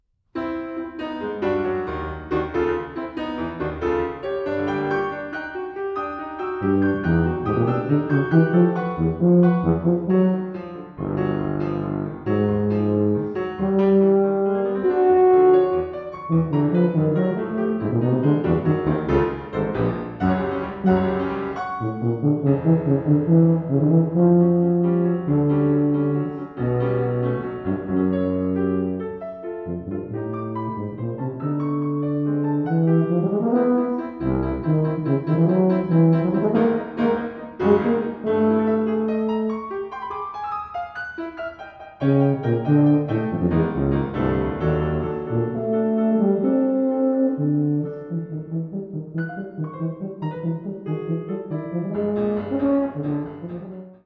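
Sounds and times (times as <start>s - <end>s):
piano in a sonata: 0.0s - 54.0s
tuba in a sonata: 0.4s - 54.0s.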